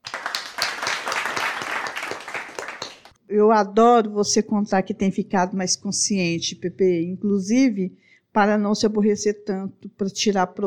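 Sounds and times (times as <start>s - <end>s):
applause: 0.0s - 3.2s
speech: 3.3s - 10.6s.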